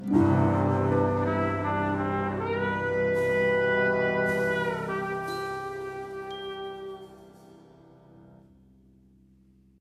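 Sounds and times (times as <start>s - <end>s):
music sting: 0.0s - 8.5s.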